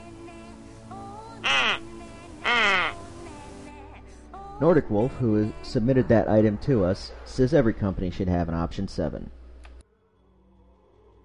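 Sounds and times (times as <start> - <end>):
duck quacks: 1.4 - 1.8, 2.4 - 3.0
speech: 4.6 - 9.4.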